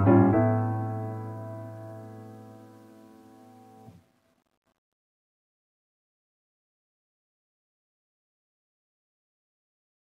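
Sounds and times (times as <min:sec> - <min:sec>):
pretty background music: 0:00.0 - 0:04.0.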